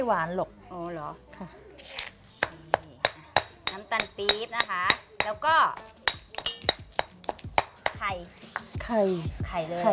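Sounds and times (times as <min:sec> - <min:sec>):
speech: 0:00.0 - 0:01.7, 0:03.9 - 0:06.0, 0:08.0 - 0:09.9
pestle pounding curry paste in a mortar: 0:02.4 - 0:08.9.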